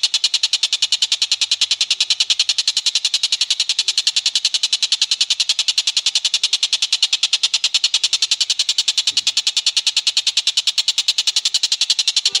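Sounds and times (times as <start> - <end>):
Tengkek Buto kingfisher calling: 0.0 - 12.3.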